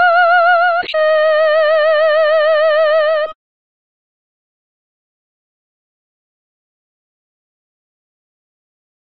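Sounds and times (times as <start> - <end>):
soprano singing: 0.0 - 3.4.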